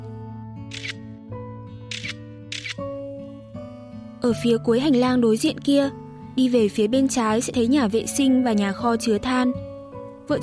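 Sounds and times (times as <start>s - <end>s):
phone camera shutter clicks: 0.7s - 1.0s, 1.9s - 2.8s
speech: 4.2s - 9.7s, 10.3s - 10.4s.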